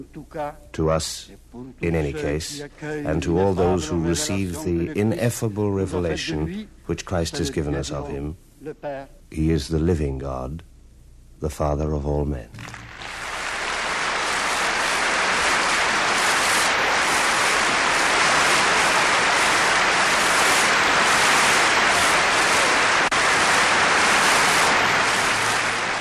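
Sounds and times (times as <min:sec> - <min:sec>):
speech: 0:00.0 - 0:10.7, 0:11.4 - 0:12.8
assembly applauding: 0:12.6 - 0:25.9.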